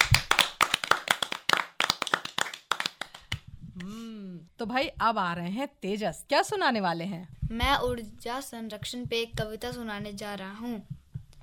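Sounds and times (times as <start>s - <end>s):
loud hand clapping from a small group: 0.0s - 3.9s
speech: 4.6s - 10.9s.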